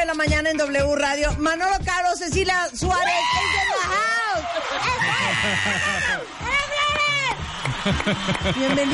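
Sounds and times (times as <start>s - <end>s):
speech: 0.1s - 6.5s, 7.8s - 8.9s
audience shouting and cheering: 2.9s - 8.9s
laughter: 3.2s - 6.4s, 7.5s - 8.9s.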